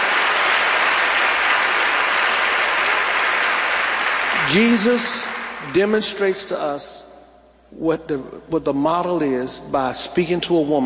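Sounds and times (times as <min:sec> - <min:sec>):
audience applauding: 0:00.0 - 0:06.0
speech: 0:04.5 - 0:07.1, 0:07.7 - 0:10.8.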